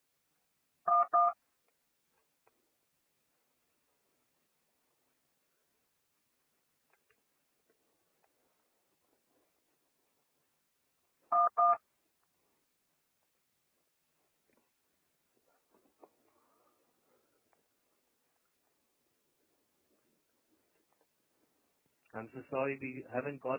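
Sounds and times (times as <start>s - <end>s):
telephone keypad dialing tones: 0.9s - 1.4s, 11.3s - 11.8s
speech: 22.2s - 23.5s.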